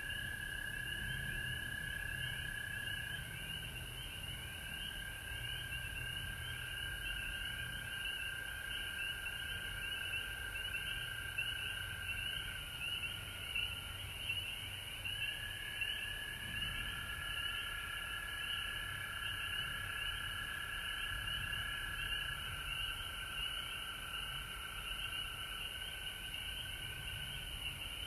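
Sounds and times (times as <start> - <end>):
frog chorus trilling and chirping: 0.0 - 28.0.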